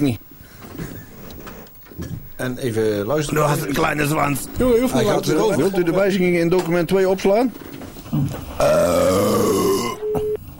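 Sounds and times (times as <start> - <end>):
speech: 0.0 - 0.2, 2.0 - 9.8
pig grunting: 8.6 - 10.0.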